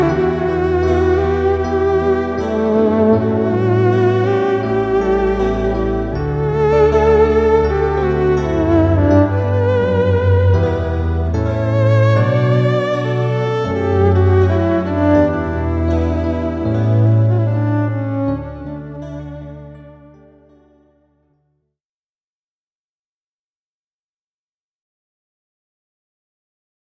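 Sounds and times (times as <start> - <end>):
violin: 0.0 - 21.1
keyboard: 0.0 - 21.3.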